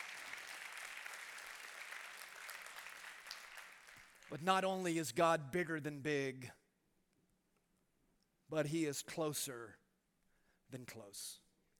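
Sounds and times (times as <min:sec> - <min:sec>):
audience applause: 0:00.0 - 0:04.4
speech: 0:04.3 - 0:06.6, 0:08.5 - 0:09.8, 0:10.7 - 0:11.4.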